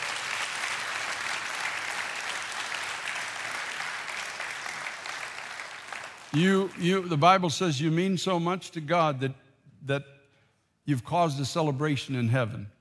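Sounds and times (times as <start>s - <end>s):
audience clapping: 0.0s - 7.4s
speech: 6.3s - 10.2s, 10.9s - 12.7s.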